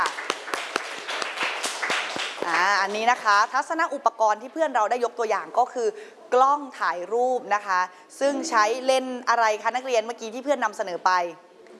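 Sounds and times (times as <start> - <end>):
classroom clapping: 0.0 - 3.9
speech: 2.6 - 11.5.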